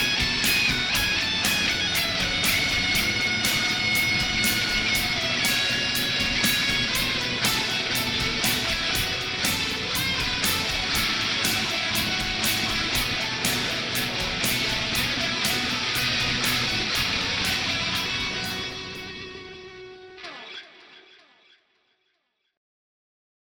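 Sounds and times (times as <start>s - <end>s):
residual noise: 0.0s - 20.0s
rock guitar riff: 0.0s - 21.5s.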